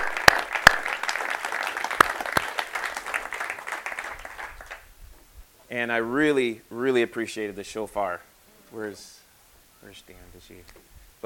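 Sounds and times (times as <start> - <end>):
audience applause: 0.0 - 4.9
speech: 5.7 - 9.2, 9.8 - 11.2.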